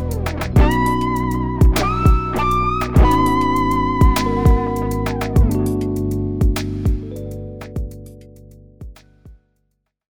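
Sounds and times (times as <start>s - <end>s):
smooth guitar music: 0.0s - 9.2s.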